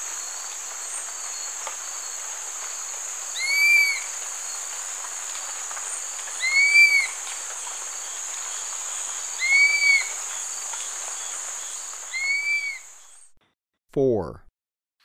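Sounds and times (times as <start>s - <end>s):
high insect drone: 0.0s - 13.2s
dusky-capped flycatcher calling: 9.4s - 10.1s, 12.1s - 12.9s
speech: 14.0s - 14.4s.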